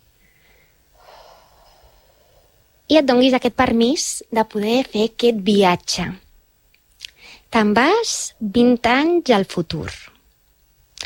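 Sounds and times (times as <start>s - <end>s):
slow deep breath during a guided relaxation exercise: 0.2s - 2.8s, 7.2s - 7.5s
speech: 2.9s - 6.2s, 7.5s - 10.1s.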